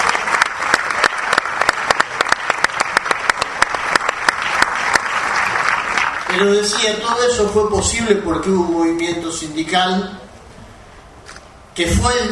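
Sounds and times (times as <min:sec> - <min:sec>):
audience applauding a speaker's arrival: 0:00.0 - 0:07.0
speech: 0:06.4 - 0:10.2, 0:11.8 - 0:12.3.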